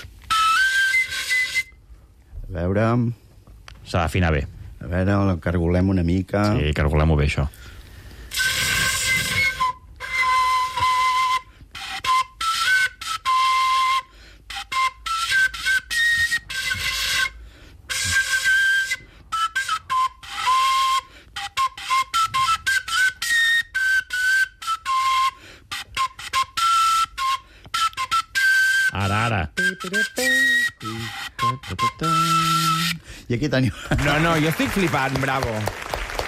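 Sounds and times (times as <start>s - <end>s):
whistling tones blown through a crumpled paper sheet rolled into a tube: 0.0s - 1.8s, 8.2s - 33.1s
speech: 2.5s - 3.2s, 3.9s - 7.8s, 33.5s - 35.9s.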